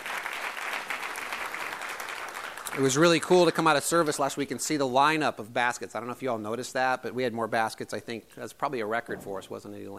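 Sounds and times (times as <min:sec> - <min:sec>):
audience round of applause: 0:00.0 - 0:03.6
speech: 0:02.7 - 0:09.9.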